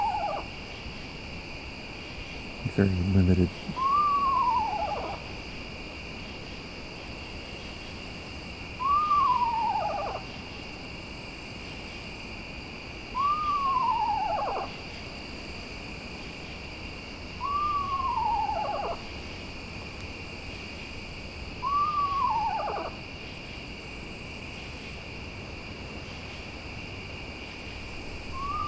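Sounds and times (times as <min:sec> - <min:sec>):
owl hooting one repeated note: 0:00.0 - 0:00.5, 0:02.7 - 0:05.2, 0:08.8 - 0:10.3, 0:13.1 - 0:14.8, 0:17.4 - 0:19.1, 0:21.5 - 0:23.0, 0:28.2 - 0:28.6
constant high drone of crickets: 0:00.0 - 0:28.6
speech: 0:02.6 - 0:03.9.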